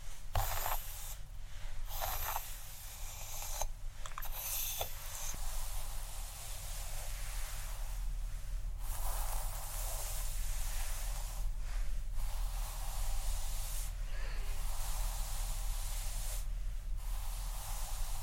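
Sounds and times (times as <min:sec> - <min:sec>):
scalp massage scratching and brushing through hair: 0:00.0 - 0:01.2, 0:01.9 - 0:18.2.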